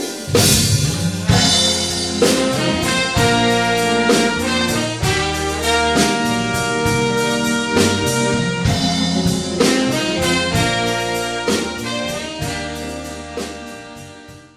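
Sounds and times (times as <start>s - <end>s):
wedding band playing: 0.0s - 14.5s.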